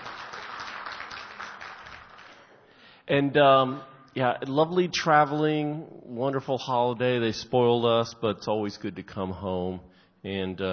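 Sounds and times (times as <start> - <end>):
audience clapping in a church: 0.0 - 2.8
speech: 3.1 - 10.7.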